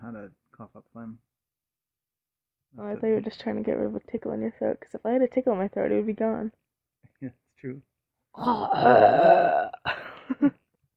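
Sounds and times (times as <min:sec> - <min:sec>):
speech: 0:00.1 - 0:01.3, 0:02.7 - 0:06.6, 0:07.2 - 0:10.6
voice making a growling monster noise: 0:08.4 - 0:09.8.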